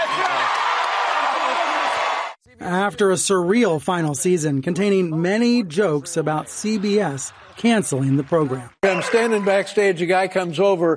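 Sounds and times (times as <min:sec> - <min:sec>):
studio audience of The Late Show cheering: 0:00.0 - 0:02.4, 0:06.2 - 0:09.9
speech: 0:02.6 - 0:10.9.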